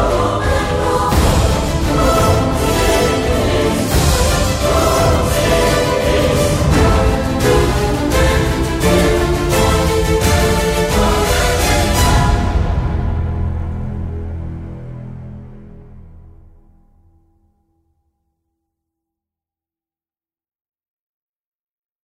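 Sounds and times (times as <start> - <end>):
epic dramatic powerful orchestral choir music: 0.0 - 16.6.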